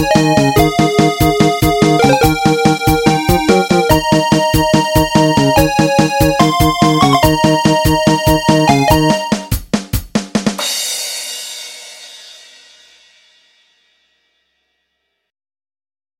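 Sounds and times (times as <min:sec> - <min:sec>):
game over jingle: 0:00.2 - 0:09.4.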